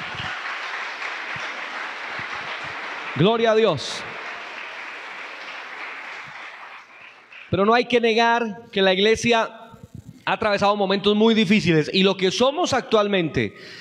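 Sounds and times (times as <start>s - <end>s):
audience applause: 0.0s - 7.5s
speech: 3.2s - 4.1s, 7.5s - 9.6s, 10.3s - 13.8s.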